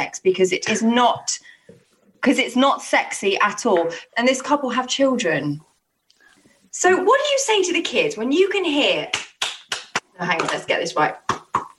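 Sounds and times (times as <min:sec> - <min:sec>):
speech: 0:00.0 - 0:05.7, 0:06.8 - 0:09.3, 0:10.2 - 0:11.3
sharp loud hand claps: 0:09.1 - 0:11.7.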